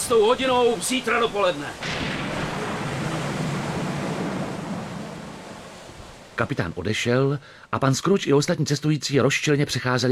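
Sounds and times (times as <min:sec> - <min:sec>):
churning water and surf: 0:00.0 - 0:07.8
speech: 0:00.1 - 0:02.1, 0:06.4 - 0:10.0.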